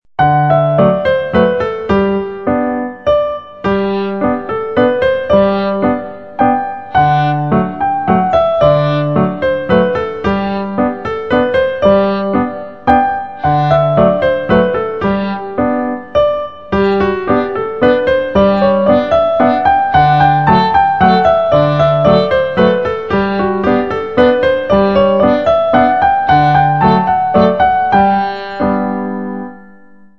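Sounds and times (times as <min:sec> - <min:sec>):
slow waltz music: 0:00.2 - 0:30.1.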